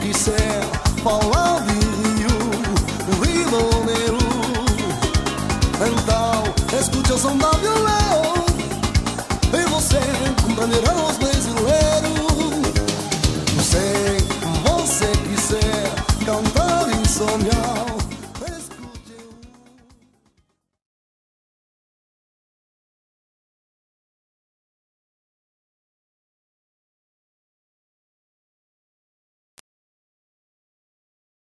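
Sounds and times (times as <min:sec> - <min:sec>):
samba music: 0:00.0 - 0:20.1.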